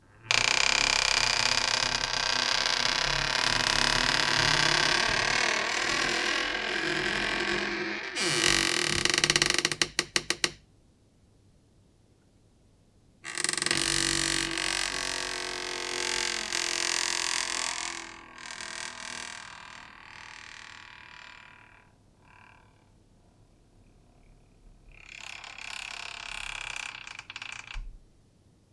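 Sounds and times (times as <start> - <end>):
slow creepy door creaks: 0.2 - 10.6, 13.3 - 23.0, 25.1 - 28.0.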